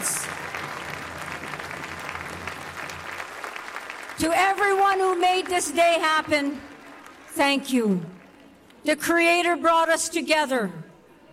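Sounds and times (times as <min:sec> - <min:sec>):
audience applause: 0:00.0 - 0:07.5
speech: 0:04.2 - 0:06.7, 0:07.4 - 0:08.1, 0:08.8 - 0:10.8.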